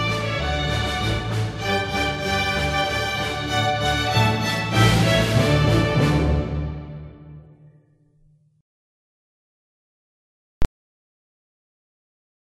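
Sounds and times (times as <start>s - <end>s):
string orchestra playing: 0.0s - 7.6s.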